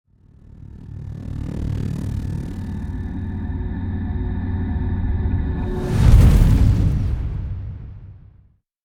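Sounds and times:
rising sweep: 0.6s - 7.7s
impact hit: 5.0s - 8.5s.

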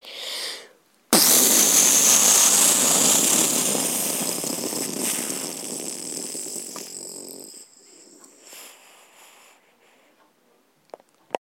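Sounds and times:
person imitating a bomb with voice: 1.1s - 7.8s.

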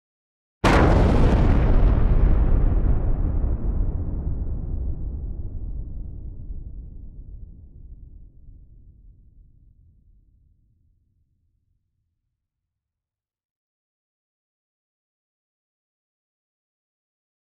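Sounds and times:
explosion blast: 0.6s - 8.3s.

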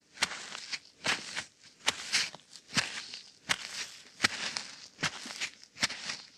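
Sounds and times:
footsteps walking: 0.1s - 6.3s.

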